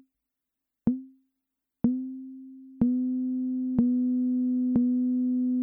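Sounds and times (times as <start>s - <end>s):
MFB Tanzbaer drum machine mid tom conga: 0.9s - 1.2s, 1.9s - 5.6s.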